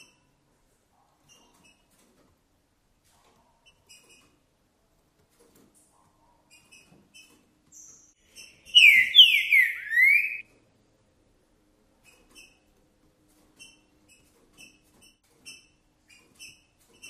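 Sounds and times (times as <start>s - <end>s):
green-winged saltator whistled song: 8.7s - 10.4s.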